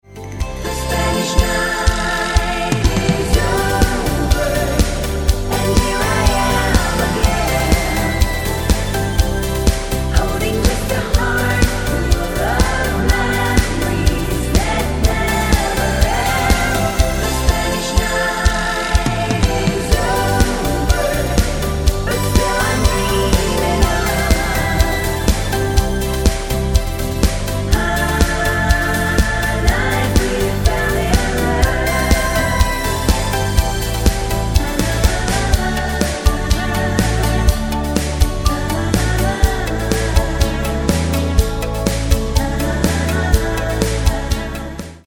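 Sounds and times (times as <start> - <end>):
choir: 0.6 - 45.0.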